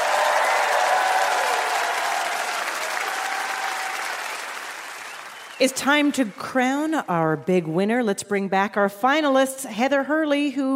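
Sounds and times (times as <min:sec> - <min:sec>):
trivia game show studio audience clapping for Chris Hadfield: 0:00.0 - 0:07.0
speech: 0:05.6 - 0:10.7.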